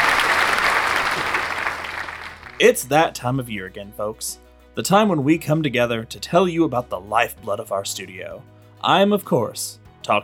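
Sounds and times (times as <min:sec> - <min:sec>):
audience applause: 0:00.0 - 0:02.6
speech: 0:02.6 - 0:10.2.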